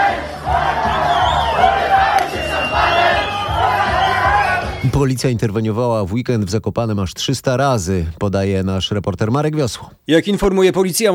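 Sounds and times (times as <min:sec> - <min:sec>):
crowd partying and chanting in street: 0:00.0 - 0:05.3
speech: 0:05.0 - 0:11.1.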